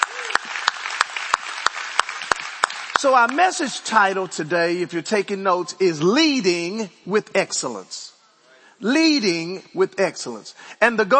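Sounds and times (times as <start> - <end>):
rhythmic hand claps: 0.0 - 4.0
church congregation clapping: 0.0 - 4.5
speech: 3.0 - 8.1, 8.8 - 11.1.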